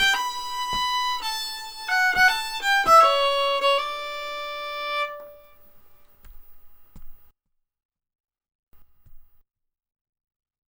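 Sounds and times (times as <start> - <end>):
slow polska folk dance tune: 0.0 - 7.3.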